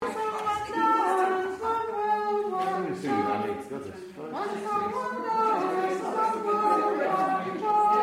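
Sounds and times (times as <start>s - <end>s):
tenor singing: 0.0s - 8.0s.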